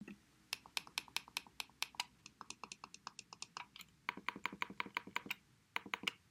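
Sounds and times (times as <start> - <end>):
Logitech M590 mouse wheel scrolling sideways and front to back: 0.6 - 6.2.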